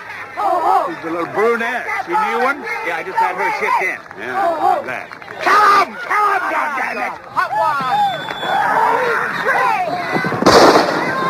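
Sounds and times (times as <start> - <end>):
people shouting excitedly: 0.0 - 1.0, 1.8 - 11.2
speech: 1.0 - 10.3
gunshot in a film's football scene: 10.4 - 11.2.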